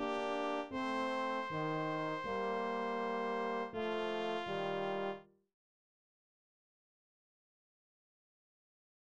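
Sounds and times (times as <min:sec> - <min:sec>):
brass playing: 0:00.0 - 0:05.2.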